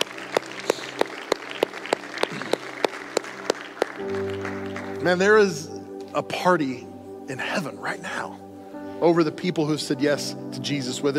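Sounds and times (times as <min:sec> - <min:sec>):
audience applause: 0:00.0 - 0:05.2
speech: 0:05.0 - 0:08.4, 0:09.0 - 0:11.1.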